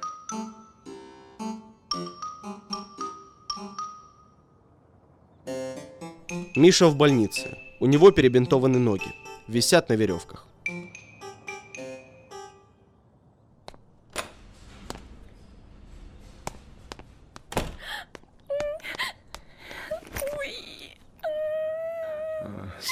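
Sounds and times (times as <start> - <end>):
speech: 6.6 - 10.5
soft thuds: 13.6 - 20.4
woman crying and wailing beside a hospitalised man: 17.8 - 22.9.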